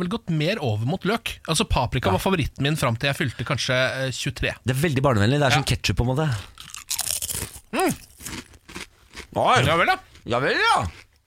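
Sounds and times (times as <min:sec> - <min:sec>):
speech: 0:00.0 - 0:06.7, 0:07.8 - 0:08.1, 0:09.3 - 0:11.0
crunching a paprika-flavoured potato chip: 0:06.5 - 0:09.8, 0:10.6 - 0:11.2.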